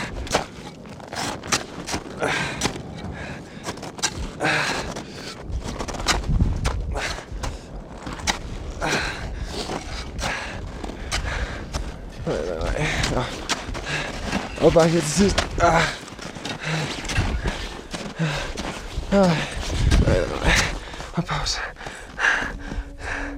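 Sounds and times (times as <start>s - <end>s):
footsteps walking on a hike near a summit: 0.4s - 23.3s
speech: 14.6s - 16.0s, 19.1s - 19.5s.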